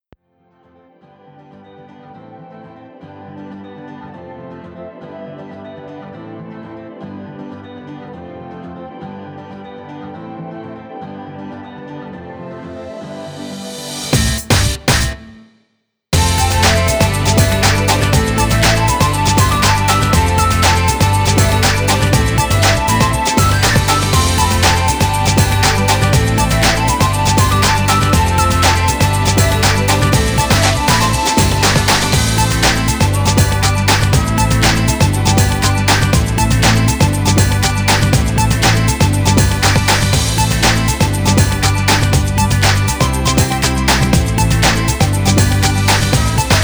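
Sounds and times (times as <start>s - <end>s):
instrumental music: 16.2s - 46.6s.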